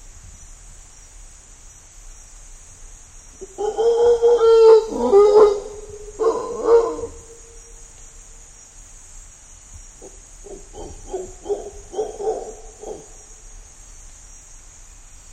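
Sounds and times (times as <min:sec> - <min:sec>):
mantled howler monkey: 0:03.4 - 0:07.6, 0:10.0 - 0:13.4.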